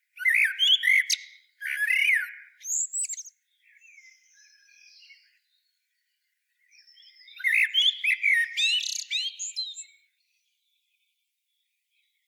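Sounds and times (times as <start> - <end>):
Common blackbird Turdus merula giving warbled song phrases: 0.0 - 12.2.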